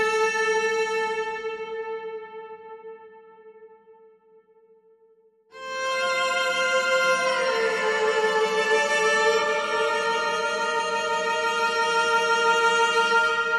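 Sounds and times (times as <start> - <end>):
lead cello: 0.0 - 2.3, 5.6 - 13.5.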